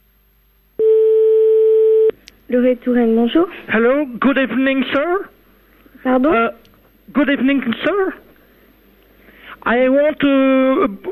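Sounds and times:
telephone ringing on the line: 0:00.8 - 0:02.1
speech: 0:02.5 - 0:05.4, 0:06.0 - 0:08.2, 0:09.6 - 0:11.1.

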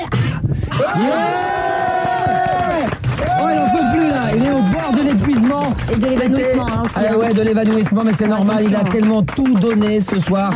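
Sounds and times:
concert audience standing ovation: 0:00.7 - 0:06.2
speech: 0:00.9 - 0:01.5, 0:05.9 - 0:10.5.

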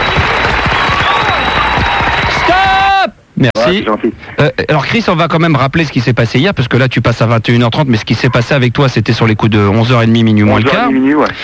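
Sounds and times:
studio applause on a French radio show: 0:00.0 - 0:03.1
speech: 0:03.4 - 0:11.4.

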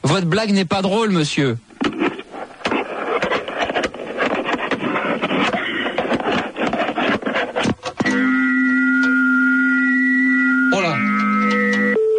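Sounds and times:
crackly telephone line noise: 0:00.0 - 0:12.0
speech: 0:00.1 - 0:01.7
loud steady electronic telephone tone: 0:08.0 - 0:12.1.

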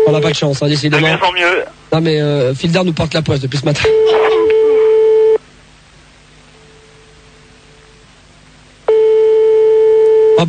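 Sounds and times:
speech: 0:00.1 - 0:04.3
unanswered telephone ringback tone: 0:03.9 - 0:05.4, 0:08.9 - 0:10.4.

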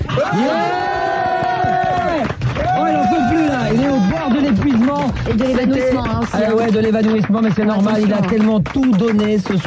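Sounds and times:
concert crowd cheering and chanting at a standing ovation: 0:00.1 - 0:04.8
speech: 0:00.2 - 0:00.8, 0:05.3 - 0:09.6.

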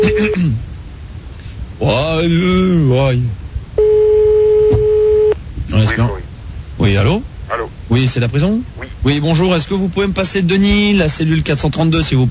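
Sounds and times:
speech: 0:01.8 - 0:03.4, 0:05.8 - 0:06.2, 0:06.8 - 0:12.2
telephone call dialing tone: 0:03.8 - 0:05.4.

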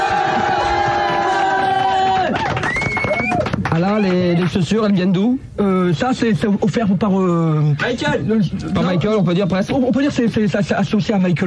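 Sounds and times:
crowd cheering for a standing ovation: 0:00.0 - 0:04.5
speech: 0:03.8 - 0:11.4.

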